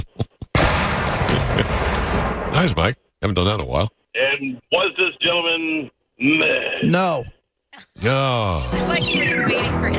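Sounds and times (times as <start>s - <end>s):
cannon fire sound effect: 0.6s - 2.9s
speech: 2.6s - 9.9s.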